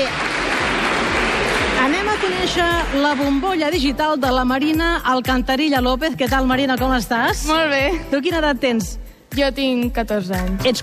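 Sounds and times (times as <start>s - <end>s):
group applause: 0.0s - 3.9s
speech: 2.3s - 10.8s.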